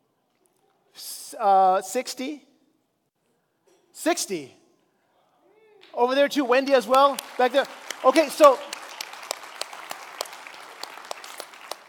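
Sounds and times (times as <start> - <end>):
speech: 1.0 - 2.5, 4.0 - 4.6, 6.0 - 8.7
sparse audience clapping: 5.8 - 11.8.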